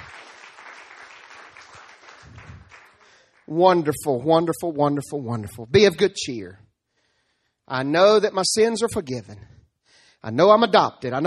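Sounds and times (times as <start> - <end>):
audience applause: 0.0 - 3.5
speech: 3.5 - 6.6, 7.7 - 9.6, 10.2 - 11.2.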